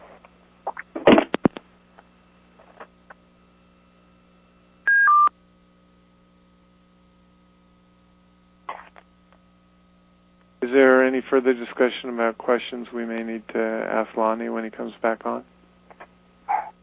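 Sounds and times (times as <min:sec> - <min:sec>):
steady low electrical hum: 0:00.0 - 0:16.8
telephone keypad dialing tones: 0:04.9 - 0:05.3
speech: 0:10.6 - 0:15.5.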